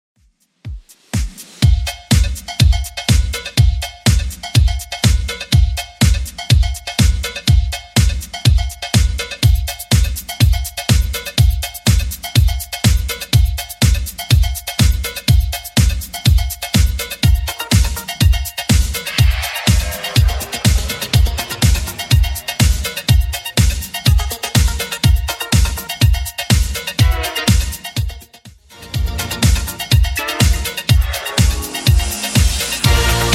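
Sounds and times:
80s style beat at 123 bpm: 0.2 - 33.3.

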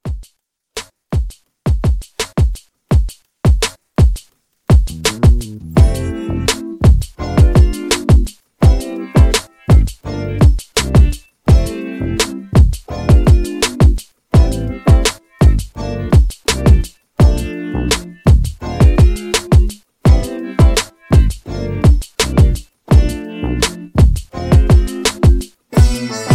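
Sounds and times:
80s RnB drum beat: 0.0 - 26.3.

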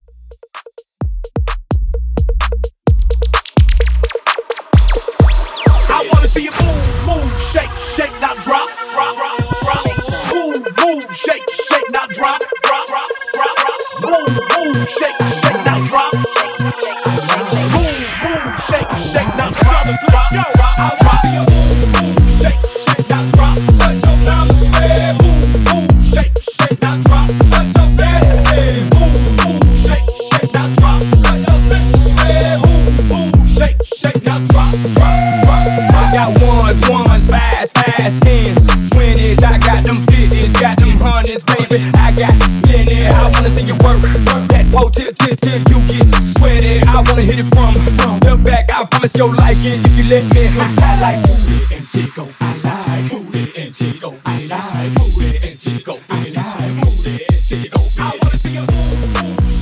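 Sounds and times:
party dance music at 129 BPM: 2.4 - 59.6.

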